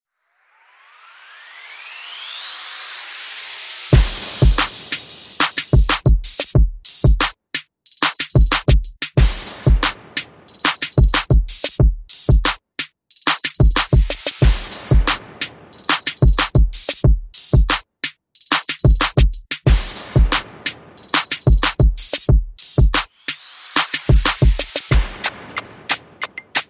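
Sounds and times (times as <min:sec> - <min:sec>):
percussion and effects: 0:02.6 - 0:06.6, 0:08.0 - 0:11.9, 0:13.2 - 0:17.8, 0:18.5 - 0:26.6.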